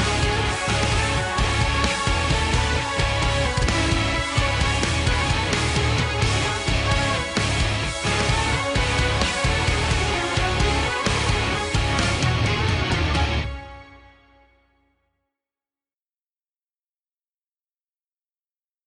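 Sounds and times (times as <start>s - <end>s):
instrumental music: 0.0s - 15.0s.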